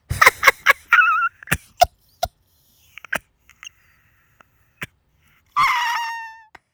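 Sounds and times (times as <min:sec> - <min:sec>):
laughing: 0:00.0 - 0:04.9.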